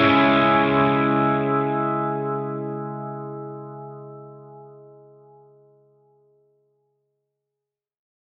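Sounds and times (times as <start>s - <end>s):
Analog Deluxe Memory Boy effects pedal: 0.0s - 6.4s.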